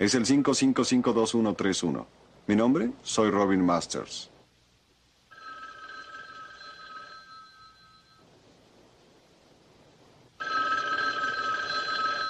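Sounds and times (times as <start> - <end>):
speech: 0.0 - 4.3
soft hiss: 0.0 - 5.4, 6.8 - 10.4
telephone ringing: 5.3 - 8.4, 10.4 - 12.2.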